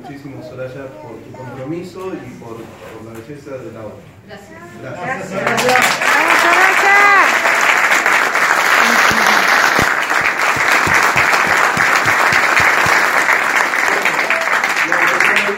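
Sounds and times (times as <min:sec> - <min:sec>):
speech: 0:00.0 - 0:06.3
audience applause: 0:05.4 - 0:15.5.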